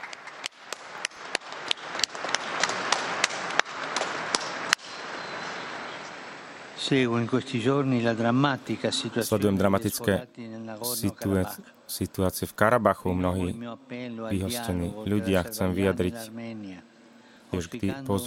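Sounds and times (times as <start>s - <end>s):
crowd applause: 0.0s - 4.8s
speech: 6.8s - 16.9s, 17.5s - 18.2s.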